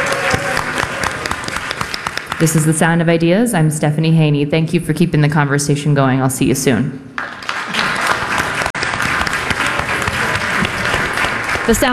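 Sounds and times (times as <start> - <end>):
audience applause: 0.0 - 2.5, 7.2 - 11.9
speech: 2.4 - 7.3, 11.7 - 11.9.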